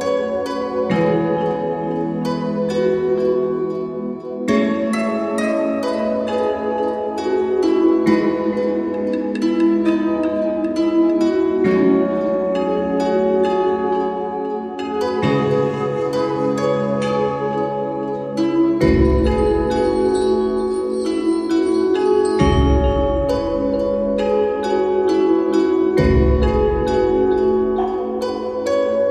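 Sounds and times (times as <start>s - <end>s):
relaxing forest music with Japanese ambience: 0.0s - 29.1s.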